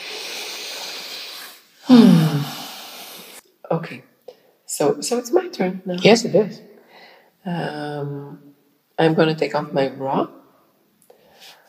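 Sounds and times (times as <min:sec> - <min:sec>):
person taking a deep rasping breath: 0:00.0 - 0:03.4, 0:06.8 - 0:07.4, 0:11.1 - 0:11.6
speech: 0:01.9 - 0:02.6, 0:03.8 - 0:04.1, 0:04.8 - 0:06.7, 0:07.4 - 0:10.4.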